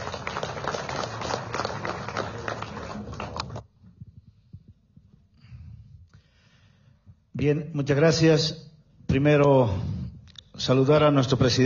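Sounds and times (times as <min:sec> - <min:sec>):
crowd applause: 0:00.0 - 0:03.6
speech: 0:07.4 - 0:09.9, 0:10.6 - 0:11.6.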